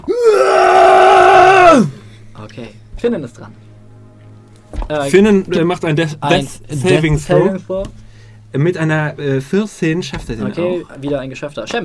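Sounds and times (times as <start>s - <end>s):
tabletop role-playing game player screaming in frustration: 0.0s - 2.0s
speech: 2.6s - 3.7s, 4.9s - 11.8s.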